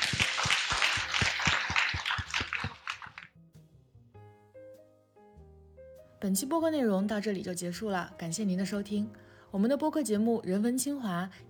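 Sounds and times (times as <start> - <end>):
audience applause: 0.0 - 3.3
speech: 6.2 - 11.4.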